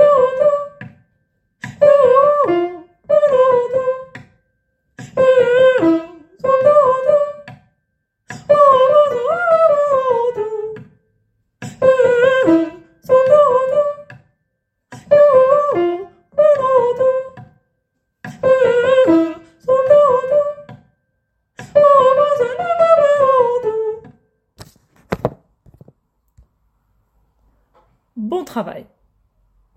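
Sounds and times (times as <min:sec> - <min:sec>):
soprano singing: 0:00.0 - 0:00.8, 0:01.8 - 0:04.2, 0:05.0 - 0:07.5, 0:08.3 - 0:10.9, 0:11.8 - 0:14.2, 0:15.0 - 0:17.5, 0:18.3 - 0:20.8, 0:21.6 - 0:24.2.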